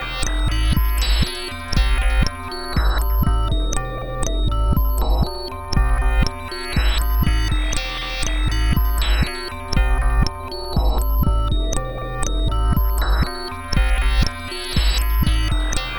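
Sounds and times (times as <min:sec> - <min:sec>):
combination rhythm beat: 0:00.0 - 0:15.9.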